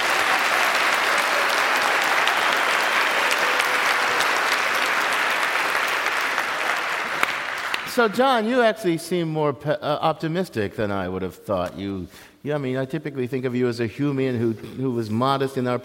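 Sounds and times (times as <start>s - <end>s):
live audience applause: 0.0s - 8.1s
speech: 8.0s - 15.8s.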